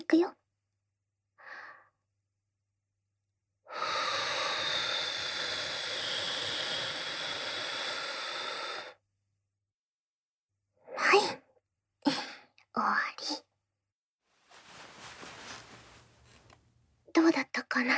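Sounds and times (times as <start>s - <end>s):
speech: 0.1s - 0.4s, 12.8s - 13.4s, 17.2s - 17.9s
breath blown into the ear in an ASMR session: 3.7s - 9.0s.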